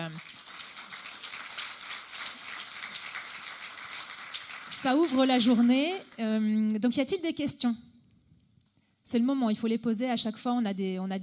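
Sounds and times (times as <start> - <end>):
audience applause: 0.0 - 6.1
speech: 4.8 - 7.9, 9.1 - 11.2.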